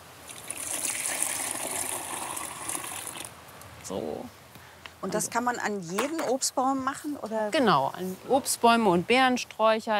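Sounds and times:
liquid pouring from a container: 0.2 - 3.3
speech: 3.9 - 4.4, 5.0 - 9.9.

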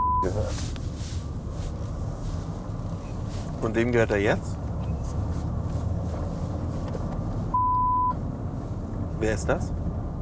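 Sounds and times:
censorship bleep over customer names: 0.0 - 0.3, 7.6 - 8.2
low rumbling noise: 0.0 - 10.1
speech: 0.2 - 0.8, 3.6 - 4.6, 9.2 - 9.8.

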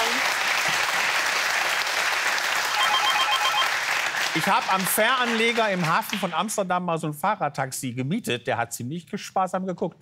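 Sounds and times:
applause: 0.0 - 6.5
speech: 4.4 - 9.9.

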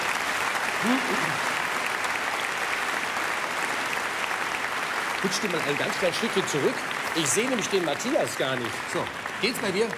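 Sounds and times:
audience applause: 0.0 - 9.9
speech: 0.8 - 1.5, 5.2 - 9.9
voice murmur: 0.8 - 1.6.

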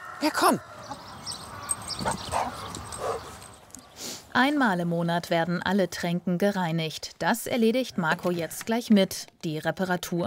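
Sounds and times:
speech: 0.2 - 0.7, 4.4 - 10.2
dogs yelping and whimpering: 0.9 - 3.6.

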